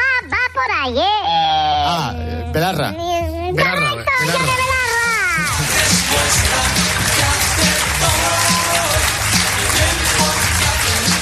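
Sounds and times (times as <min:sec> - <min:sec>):
speech: 0:00.8 - 0:01.2, 0:01.8 - 0:04.6
crowd applause: 0:04.3 - 0:11.2.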